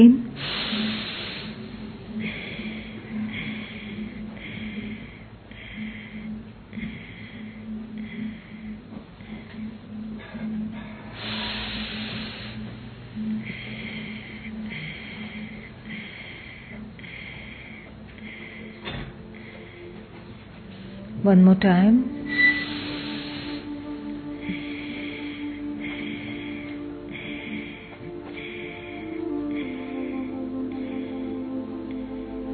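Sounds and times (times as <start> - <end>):
speech: 0.0 - 0.6, 21.4 - 22.1
steady low humming drone: 0.0 - 32.5
breathing in and out through the nose: 0.3 - 21.1, 22.2 - 32.1.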